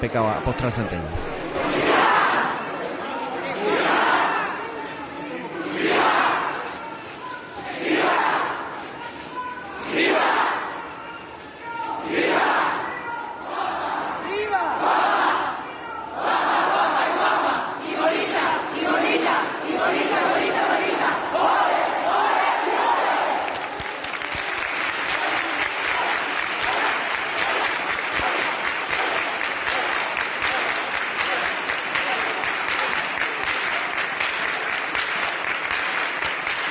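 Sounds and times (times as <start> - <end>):
speech: 0.0 - 1.8
pilgrim crowd cheering at sanctuary: 0.0 - 36.6
pilgrim crowd applauding at sanctuary: 23.0 - 36.6.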